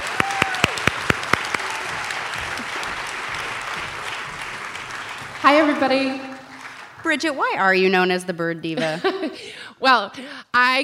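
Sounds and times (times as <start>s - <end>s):
crowd applauding: 0.0s - 7.6s
speech: 5.5s - 6.3s, 7.0s - 10.8s
laughter: 8.7s - 9.6s.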